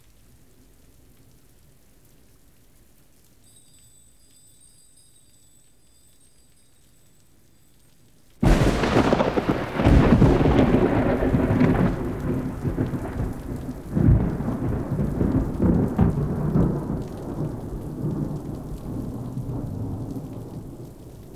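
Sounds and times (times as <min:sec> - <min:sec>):
rain: 0:00.0 - 0:21.3
thunder: 0:08.4 - 0:21.3.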